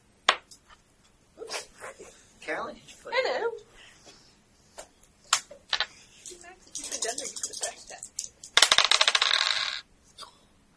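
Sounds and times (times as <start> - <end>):
speech: 2.5 - 3.5
dice rattling and clattering across a surface: 5.7 - 9.8.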